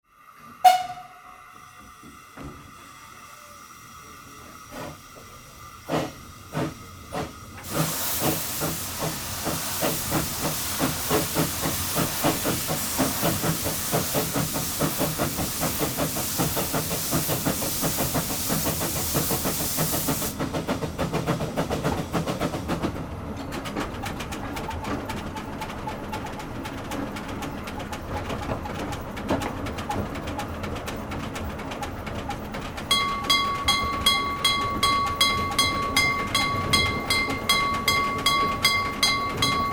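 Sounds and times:
old train departing heard inside the cabin: 0:00.1 - 0:29.9, 0:30.5 - 0:39.7.

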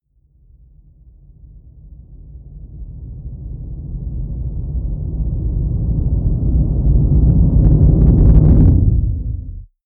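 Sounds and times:
deep distorted noise synth rumble: 0:05.1 - 0:09.7.

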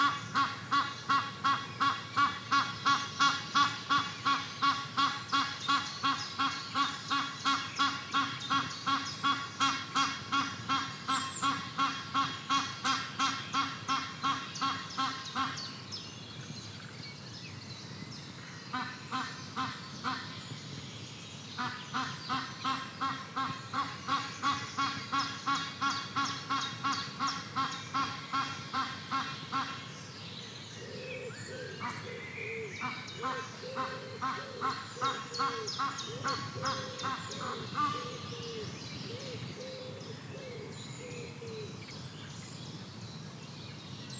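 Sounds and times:
duck quacking: 0:00.0 - 0:15.6, 0:21.6 - 0:29.8
mellow bird calls: 0:00.0 - 0:44.1.

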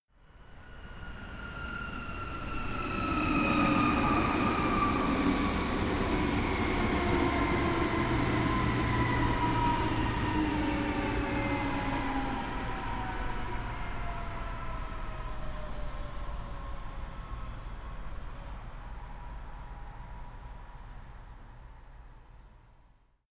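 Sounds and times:
city train decelerating into a train station: 0:00.5 - 0:17.7.

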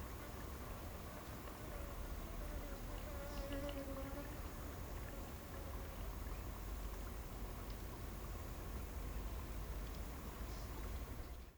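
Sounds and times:
insects in the African bush at midday: 0:00.2 - 0:07.5, 0:08.0 - 0:11.4
birds in the African bush at midday: 0:10.3 - 0:11.5.

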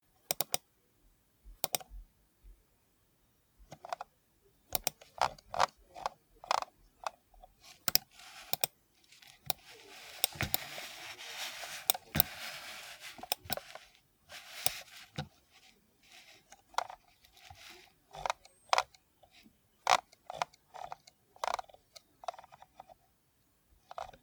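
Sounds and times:
computer mouse in use: 0:00.3 - 0:00.6, 0:01.6 - 0:01.9, 0:04.7 - 0:07.2, 0:07.8 - 0:08.8, 0:09.4 - 0:15.3, 0:16.5 - 0:23.0, 0:23.9 - 0:24.2.

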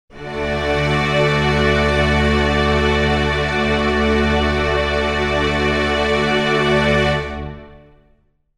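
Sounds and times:
string chord in D major: 0:00.1 - 0:08.1.

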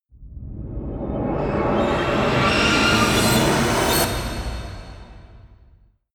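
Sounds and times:
rising squeak riser: 0:00.8 - 0:05.4.

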